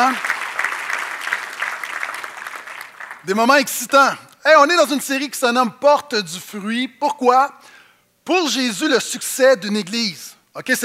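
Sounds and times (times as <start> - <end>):
speech: 0.0 - 0.3, 3.2 - 10.8
audience applause: 0.0 - 3.4.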